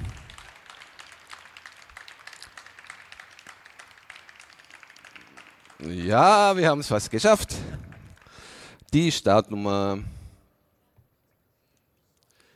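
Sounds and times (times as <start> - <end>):
audience applause: 0.0 - 8.8
speech: 5.8 - 7.8, 8.9 - 10.2.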